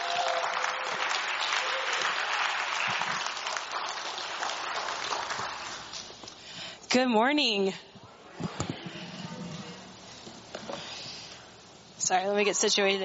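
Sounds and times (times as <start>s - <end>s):
audience applause welcoming a speaker to the morning service: 0.0s - 6.2s
speech: 6.9s - 7.9s, 12.1s - 13.0s.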